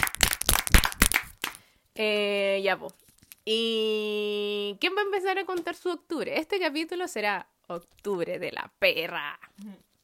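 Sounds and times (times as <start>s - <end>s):
small group clapping: 0.0s - 1.6s
speech: 2.0s - 9.9s.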